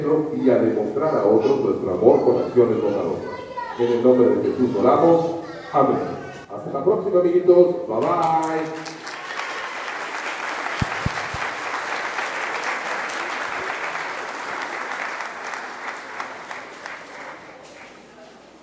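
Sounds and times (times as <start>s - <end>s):
speech: 0.0s - 8.9s
loud applause: 8.0s - 18.1s.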